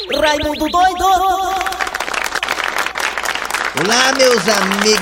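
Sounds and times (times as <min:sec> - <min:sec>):
speech: 0:00.1 - 0:01.7, 0:03.8 - 0:04.9
audience applause: 0:00.8 - 0:04.9.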